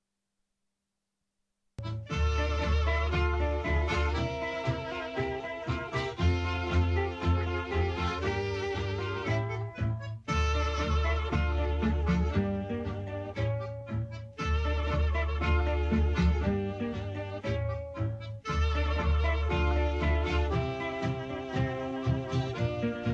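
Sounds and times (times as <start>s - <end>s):
tango music: 1.8s - 23.1s.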